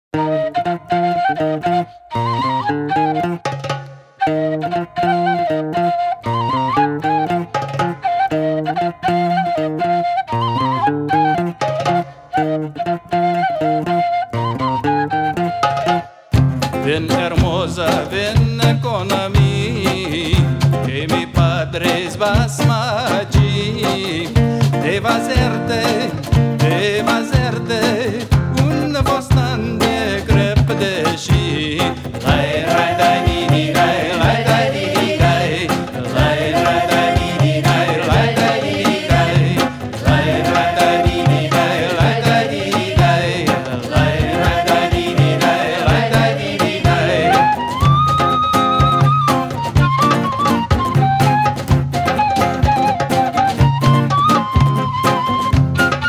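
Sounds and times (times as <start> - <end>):
Sephardic music trio playing: 0.2 - 56.0.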